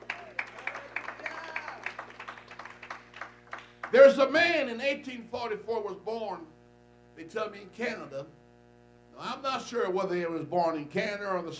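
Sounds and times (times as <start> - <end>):
audience clapping: 0.0 - 4.0
speech: 3.9 - 6.6, 7.2 - 8.4, 9.2 - 11.5.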